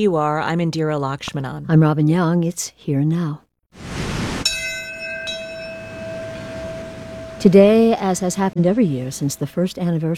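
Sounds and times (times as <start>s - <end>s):
speech: 0.0s - 3.9s, 7.4s - 10.1s
noise: 0.0s - 10.1s
memorial bell ringing: 4.4s - 9.6s.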